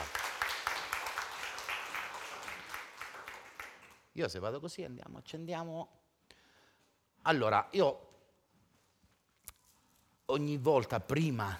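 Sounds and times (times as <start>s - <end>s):
audience applause: 0.0s - 4.0s
speech: 4.2s - 6.0s, 7.2s - 8.1s, 10.3s - 11.5s.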